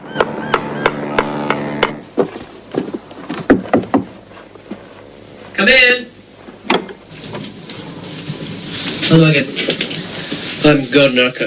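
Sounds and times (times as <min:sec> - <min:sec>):
man hammering at a roof tile: 0:00.2 - 0:04.2
speech: 0:05.6 - 0:06.1, 0:09.1 - 0:09.7, 0:10.6 - 0:11.4.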